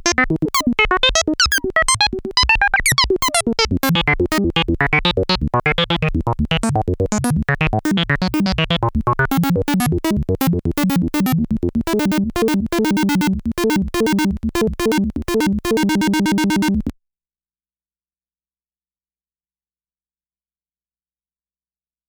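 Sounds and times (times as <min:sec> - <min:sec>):
MOOG MAVIS synthesizer sequence dry signal: 0:00.0 - 0:16.9.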